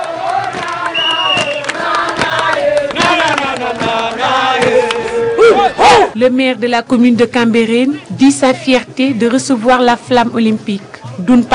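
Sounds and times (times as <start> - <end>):
huge crowd at the Padoue crossroads cheering the Olympic torch relay: 0.0 - 6.2
sharp whoops: 4.7 - 6.1
speech: 6.1 - 11.5.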